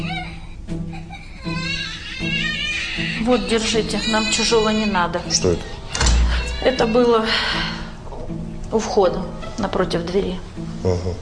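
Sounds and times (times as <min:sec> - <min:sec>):
baby crying: 0:00.0 - 0:07.9
speech: 0:03.2 - 0:05.8, 0:06.6 - 0:07.8, 0:08.7 - 0:11.2.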